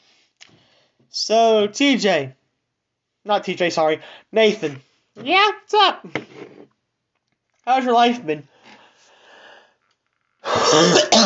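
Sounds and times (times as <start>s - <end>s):
speech: 1.1s - 2.4s, 3.2s - 6.3s, 7.7s - 8.5s, 10.4s - 11.2s
raspy wheezy cough: 10.4s - 11.2s.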